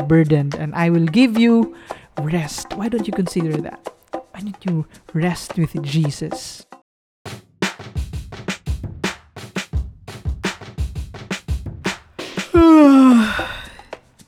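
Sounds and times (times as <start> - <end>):
speech: 0.0 - 7.4
person yawning: 12.5 - 13.9.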